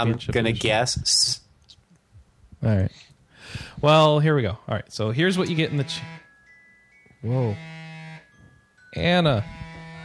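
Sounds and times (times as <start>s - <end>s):
speech: 0.0s - 1.4s, 2.6s - 6.2s, 7.2s - 7.8s, 8.9s - 9.6s
mobile phone making alert noises: 5.4s - 6.4s, 7.0s - 10.0s.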